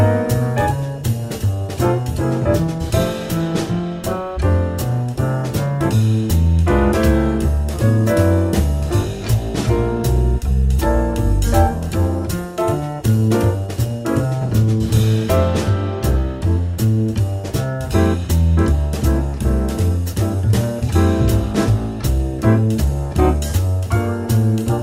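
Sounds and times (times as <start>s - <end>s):
jazz backing track chord progression: 0.0s - 24.8s.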